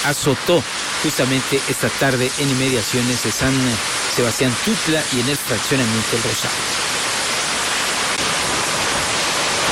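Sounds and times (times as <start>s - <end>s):
speech: 0.0s - 7.0s
heavy rain of a storm: 0.0s - 9.7s
storm wind: 0.0s - 9.7s.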